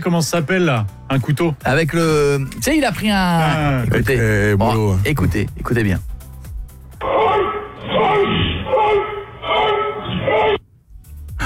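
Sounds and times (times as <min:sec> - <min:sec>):
speech: 0:00.0 - 0:06.1
person imitating a dog barking and growling: 0:07.0 - 0:10.6.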